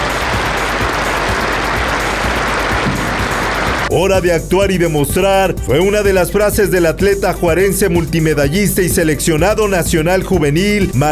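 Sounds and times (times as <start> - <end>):
a minute of applause: 0.0 - 3.9
speech: 3.9 - 11.0.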